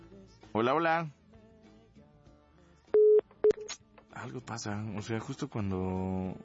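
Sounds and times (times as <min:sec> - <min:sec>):
speech: 0:00.6 - 0:01.2, 0:04.2 - 0:06.4
telephone busy tone after a cut-off call: 0:03.0 - 0:03.6.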